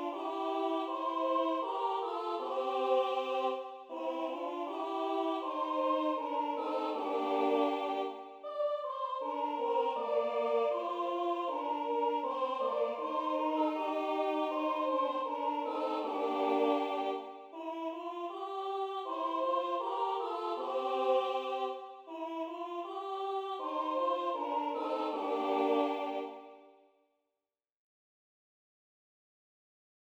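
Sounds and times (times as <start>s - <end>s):
carol singing from Basarabia: 0.0s - 26.6s.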